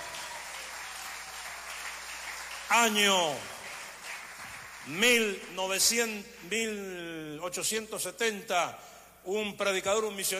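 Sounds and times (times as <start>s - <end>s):
audience applause: 0.0s - 5.3s
speech: 2.7s - 3.5s, 4.8s - 10.3s.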